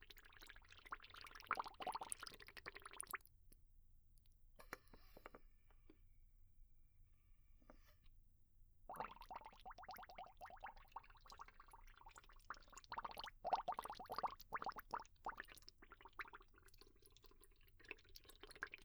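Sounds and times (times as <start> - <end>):
bubbles: 0.0 - 3.3, 8.9 - 18.8.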